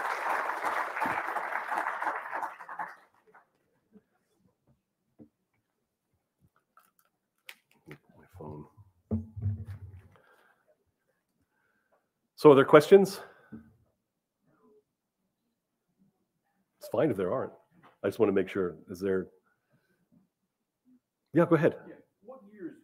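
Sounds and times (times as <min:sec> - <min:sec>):
audience clapping: 0:00.0 - 0:03.7
speech: 0:12.4 - 0:13.3, 0:17.0 - 0:19.4, 0:21.4 - 0:21.9.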